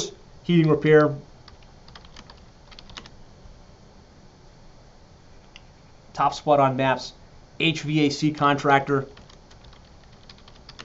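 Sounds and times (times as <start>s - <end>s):
speech: 0.0s - 1.3s, 6.2s - 9.2s
steady low hiss: 0.0s - 10.8s
typing on a computer keyboard searching for an AC repair company: 1.5s - 3.1s, 9.2s - 10.8s.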